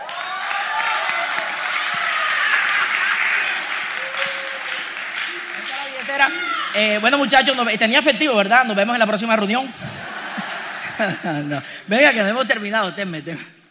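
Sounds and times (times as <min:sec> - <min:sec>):
audience applause: 0:00.0 - 0:07.1
laughter: 0:02.2 - 0:04.4, 0:09.7 - 0:11.8
speech: 0:06.2 - 0:09.9, 0:11.0 - 0:13.6.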